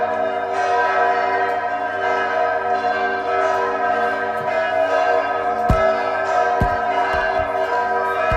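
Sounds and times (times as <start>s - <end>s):
cathedral bells ringing in Freiberg: 0.0s - 8.3s.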